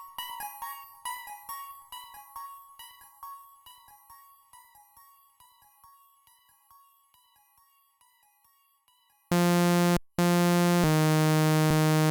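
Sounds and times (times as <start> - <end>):
wah-wah loop: 9.3 - 12.0.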